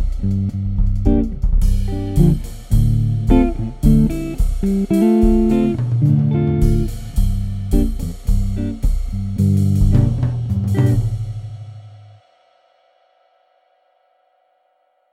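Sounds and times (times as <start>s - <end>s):
Stratocaster electric guitar playing jazz: 0.0s - 11.4s.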